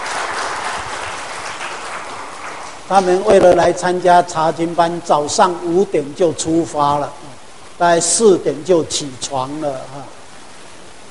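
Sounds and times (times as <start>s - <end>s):
church Bible study congregation applause welcoming visiting brothers and sisters: 0.0s - 3.0s
speech: 2.9s - 10.2s.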